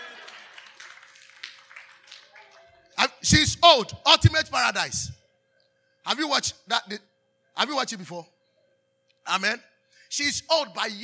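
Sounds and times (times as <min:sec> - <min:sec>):
audience clapping: 0:00.0 - 0:02.7
speech: 0:03.2 - 0:05.2, 0:06.0 - 0:08.4, 0:09.3 - 0:11.0.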